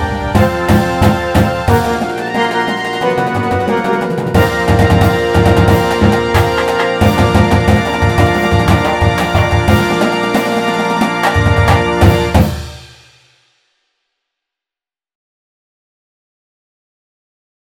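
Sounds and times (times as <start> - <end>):
fanfare: 0.0 - 13.1.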